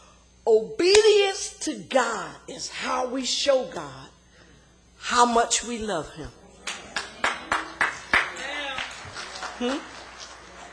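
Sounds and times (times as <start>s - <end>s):
speech: 1.7s - 4.2s, 5.0s - 6.4s, 9.6s - 9.9s
audience hand claps: 6.6s - 10.7s.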